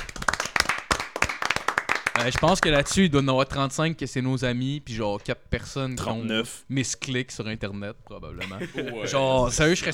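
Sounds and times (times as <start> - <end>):
hand clapping: 0.0 - 2.7
speech: 2.2 - 9.9
laughter: 8.4 - 9.9.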